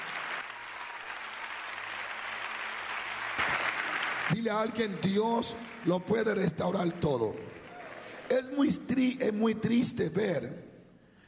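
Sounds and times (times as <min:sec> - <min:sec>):
audience applause: 0:00.0 - 0:08.6
speech: 0:04.3 - 0:07.6, 0:08.3 - 0:10.7.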